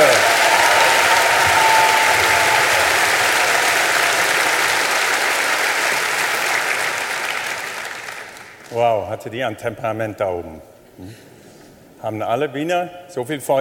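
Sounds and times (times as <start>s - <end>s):
large audience applauding Viennese debutantes: 0.0s - 8.8s
speech: 9.2s - 11.3s, 12.0s - 13.5s.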